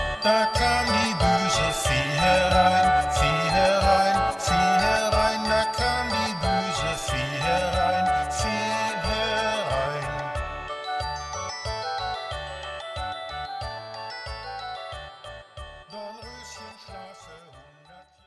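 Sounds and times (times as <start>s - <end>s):
German children's song: 0.2s - 11.1s, 15.9s - 18.2s.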